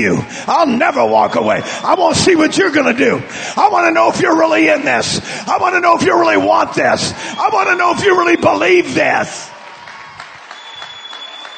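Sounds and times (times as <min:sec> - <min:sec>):
speech: 0:00.0 - 0:09.6
audience clapping hands: 0:09.4 - 0:11.5.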